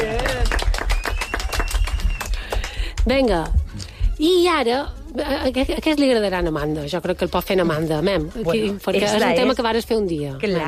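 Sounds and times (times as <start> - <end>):
applause: 0.0 - 3.1
speech: 3.1 - 10.6.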